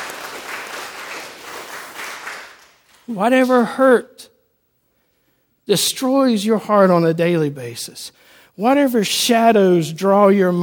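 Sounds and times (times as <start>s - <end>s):
audience clapping: 0.0s - 3.1s
speech: 3.1s - 4.3s, 5.7s - 10.6s.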